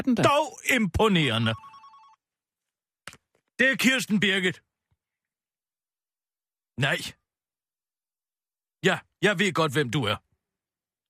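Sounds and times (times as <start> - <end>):
speech: 0.0 - 1.7, 3.6 - 4.7, 6.8 - 7.2, 8.8 - 10.2
telephone ringing: 1.3 - 2.2.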